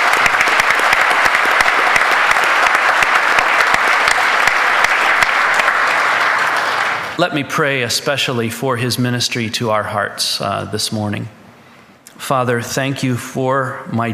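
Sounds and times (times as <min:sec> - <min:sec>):
church congregation applauding to welcome a guest pastor: 0:00.0 - 0:07.4
speech: 0:07.2 - 0:11.4, 0:12.3 - 0:14.1.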